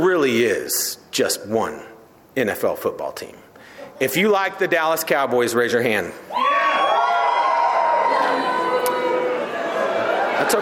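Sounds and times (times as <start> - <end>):
speech: 0.0 - 6.5, 10.5 - 10.6
audience booing: 6.3 - 10.6.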